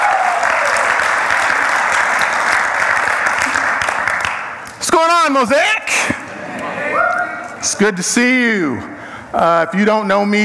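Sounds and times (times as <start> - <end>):
large group clapping: 0.0 - 4.8
speech: 5.0 - 6.2, 7.6 - 10.4.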